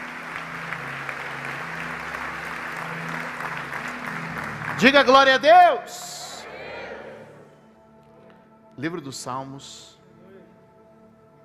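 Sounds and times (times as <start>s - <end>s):
applause: 0.0s - 6.5s
speech: 4.8s - 6.2s, 8.8s - 10.0s.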